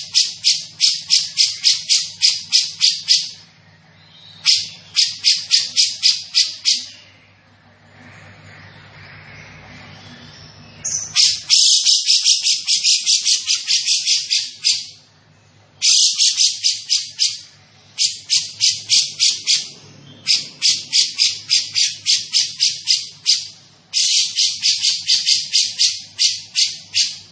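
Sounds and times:
grey-cheeked bulbul chattering: 0.0s - 7.1s, 10.8s - 15.1s, 15.8s - 27.3s.

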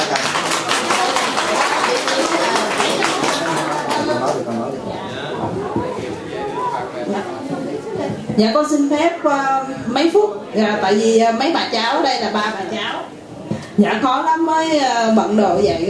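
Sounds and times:
audience at a Buddhist retreat clapping: 0.0s - 4.8s
people chattering: 0.0s - 15.8s
speech: 8.4s - 13.2s, 13.8s - 15.8s.

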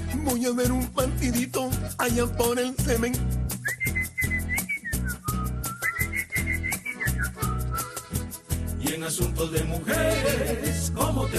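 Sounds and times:
rhythmic music with a strong beat: 0.0s - 11.3s
speech: 0.2s - 3.4s, 8.9s - 11.3s
bright wavering whistled melody: 3.5s - 8.3s.

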